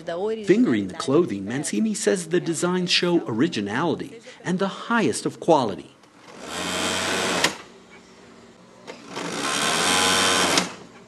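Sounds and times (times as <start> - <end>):
speech: 0.0 - 6.0
sewing machine running in a small sewing shop in Rio: 6.2 - 8.1, 8.8 - 11.0.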